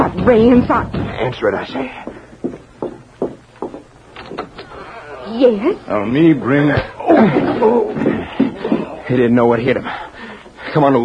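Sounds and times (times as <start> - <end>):
knocking and rattling: 0.0 - 4.6
footsteps: 0.0 - 4.8, 6.7 - 9.2
speech: 0.2 - 2.1, 5.3 - 8.1, 9.1 - 10.0, 10.8 - 11.0.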